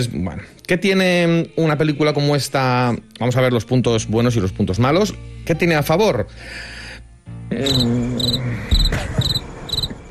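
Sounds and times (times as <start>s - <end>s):
speech: 0.0s - 6.8s, 7.5s - 9.3s
crickets chirping: 7.6s - 10.0s.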